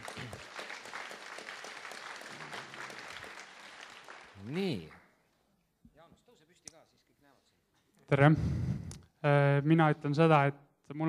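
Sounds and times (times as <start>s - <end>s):
audience applause: 0.0s - 5.0s
speech: 4.5s - 5.0s, 8.1s - 8.6s, 9.2s - 11.0s.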